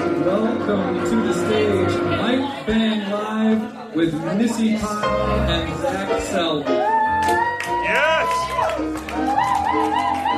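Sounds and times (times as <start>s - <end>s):
speech: 0.1s - 9.9s
large live audience cheering: 6.7s - 10.3s.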